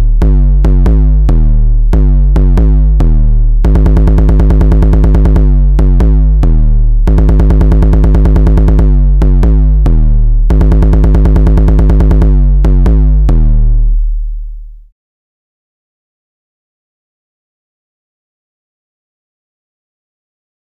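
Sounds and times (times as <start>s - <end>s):
deep bass: 0.0s - 14.9s.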